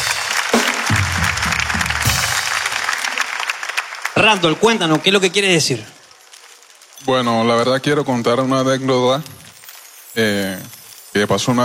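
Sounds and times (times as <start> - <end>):
audience applause: 0.0 - 6.6
speech: 4.2 - 6.0, 7.0 - 9.4, 10.2 - 11.6.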